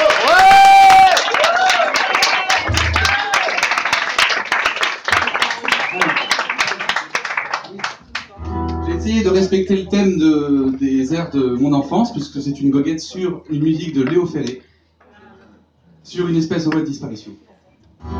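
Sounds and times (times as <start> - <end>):
audience applause: 0.0 - 8.4
high whistle: 5.8 - 6.7
speech: 9.4 - 14.7, 16.1 - 18.1.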